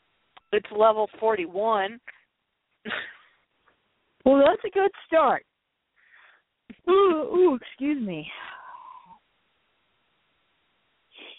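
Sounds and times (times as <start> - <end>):
speech: 0.5 - 2.2, 2.8 - 3.2, 4.2 - 5.5, 6.8 - 8.6
person yawning: 8.5 - 9.2.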